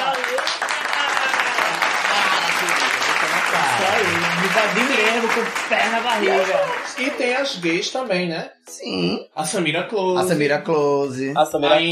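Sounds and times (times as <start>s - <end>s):
applause: 0.0s - 8.1s
speech: 3.8s - 11.8s.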